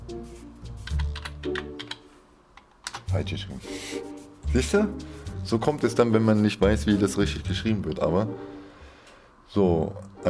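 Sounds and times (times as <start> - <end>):
typing a search term on a computer keyboard: 0.8 - 2.0
speech: 3.1 - 8.6, 9.5 - 10.2.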